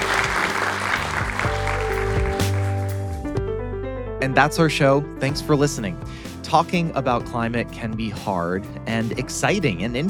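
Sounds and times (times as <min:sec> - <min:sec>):
audience applause: 0:00.0 - 0:03.1
speech: 0:04.2 - 0:10.0.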